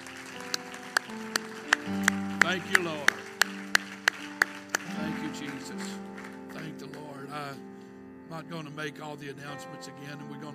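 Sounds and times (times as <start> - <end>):
audience clapping hands: 0.0 - 7.4
speech: 2.5 - 3.3, 5.6 - 10.5.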